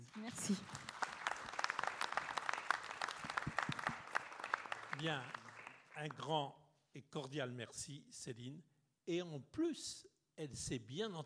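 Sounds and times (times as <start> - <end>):
audience applause: 0.0 - 6.2
speech: 0.3 - 0.7, 5.0 - 5.4, 6.0 - 11.2.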